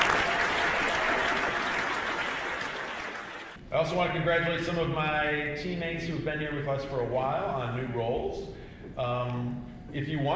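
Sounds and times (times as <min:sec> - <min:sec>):
audience applause welcoming new staff members: 0:00.0 - 0:03.6
speech: 0:03.7 - 0:10.3.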